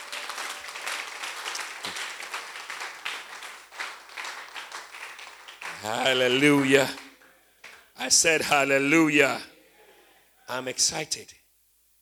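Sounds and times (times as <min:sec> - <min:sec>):
audience applauding: 0:00.0 - 0:07.9
speech: 0:05.8 - 0:07.0, 0:08.0 - 0:09.5, 0:10.5 - 0:11.4.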